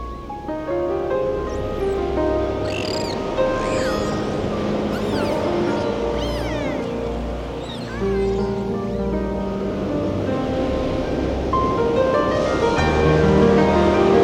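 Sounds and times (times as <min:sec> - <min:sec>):
nature ambience: 0:00.0 - 0:14.2
seagulls calling: 0:00.9 - 0:10.3.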